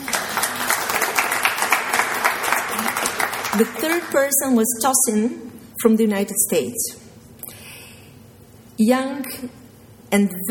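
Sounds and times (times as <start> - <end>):
audience applause: 0.0 - 4.4
speech: 3.6 - 7.0, 8.8 - 10.4.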